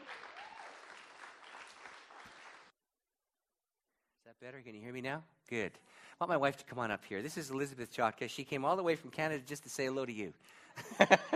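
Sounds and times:
audience applause: 0.0 - 2.7
speech: 4.4 - 11.3
laughter: 10.8 - 11.3.

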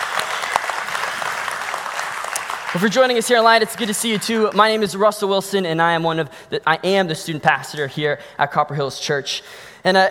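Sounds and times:
audience applause: 0.0 - 4.6
speech: 2.7 - 10.0.

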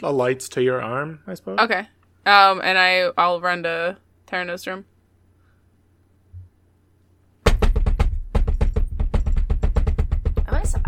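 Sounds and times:
speech: 0.0 - 4.9
frantic knocking on a door: 7.4 - 10.8.

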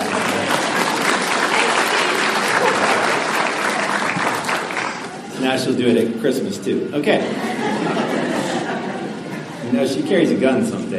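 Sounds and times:
audience applause: 0.0 - 5.4
laughter: 2.0 - 4.2, 7.1 - 10.1
speech: 5.5 - 8.0, 9.7 - 10.9.

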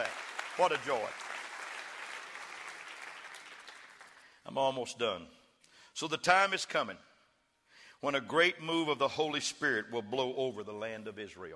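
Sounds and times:
speech: 0.0 - 1.3, 4.5 - 5.4, 6.0 - 7.1, 8.0 - 11.5
audience clapping hands: 0.0 - 4.4.

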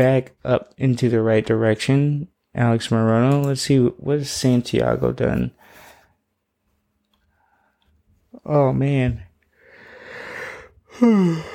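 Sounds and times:
speech: 0.0 - 5.8, 8.4 - 9.3, 11.0 - 11.5
person yawning: 10.9 - 11.5.

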